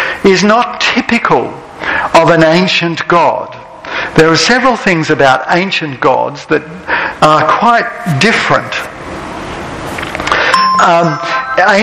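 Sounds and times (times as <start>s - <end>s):
low noise: 0.0s - 11.8s
speech: 0.2s - 1.6s, 2.2s - 8.9s, 10.8s - 11.8s
mobile phone ringtone: 10.5s - 11.8s.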